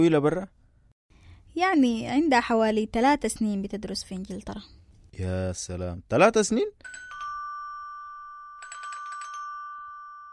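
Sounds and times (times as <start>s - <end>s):
speech: 0.0s - 0.6s, 1.6s - 7.1s
electronic doorbell ringing: 6.8s - 10.3s.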